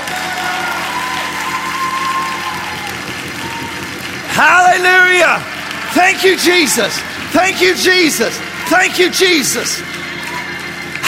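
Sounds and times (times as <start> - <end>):
audience clapping hands: 0.0 - 11.0
speech: 4.8 - 10.0.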